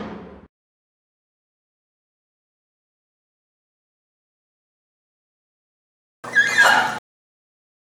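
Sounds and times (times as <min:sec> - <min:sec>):
bar door: 0:06.3 - 0:07.0.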